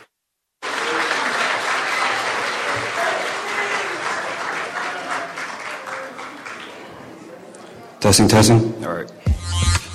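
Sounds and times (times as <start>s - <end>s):
audience applause for a young performer: 0.6s - 7.9s
speech: 8.0s - 9.6s.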